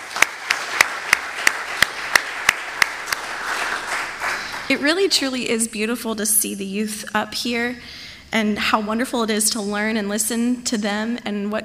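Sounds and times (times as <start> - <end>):
sharp crisp claps: 0.0 - 5.0
low hiss: 0.0 - 11.6
speech: 4.7 - 11.6.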